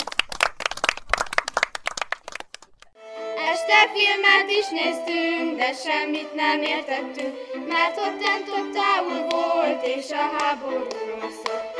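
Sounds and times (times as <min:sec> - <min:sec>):
audience applause: 0:00.0 - 0:02.9
speech: 0:03.7 - 0:11.6.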